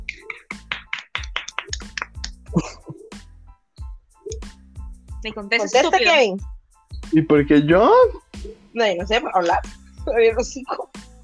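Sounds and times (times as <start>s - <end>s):
small clapping: 0.0s - 2.5s, 9.3s - 9.7s
speech: 2.5s - 2.8s, 5.2s - 6.5s, 7.1s - 8.2s, 8.8s - 10.8s
laughter: 2.5s - 3.1s.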